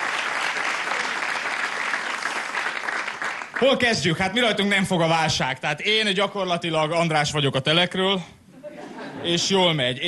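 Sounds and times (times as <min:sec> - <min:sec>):
audience applause: 0:00.0 - 0:03.7
speech: 0:03.6 - 0:08.4, 0:09.2 - 0:10.0
laughter: 0:08.6 - 0:09.8.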